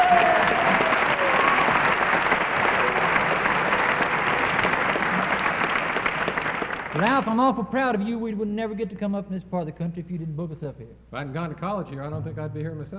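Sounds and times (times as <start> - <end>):
audience applause: 0.0 - 7.5
speech: 7.0 - 12.9.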